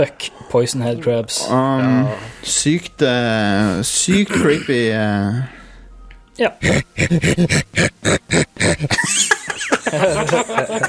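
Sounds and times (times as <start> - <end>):
speech: 0.0 - 5.6, 6.4 - 10.8
monster growl mixing cow and dog sounds: 6.6 - 8.9
laughter: 6.6 - 10.8.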